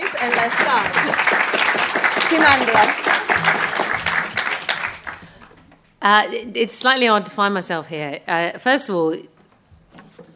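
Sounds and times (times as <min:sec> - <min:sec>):
audience applause: 0:00.0 - 0:05.6
speech: 0:00.2 - 0:03.7, 0:06.0 - 0:09.3.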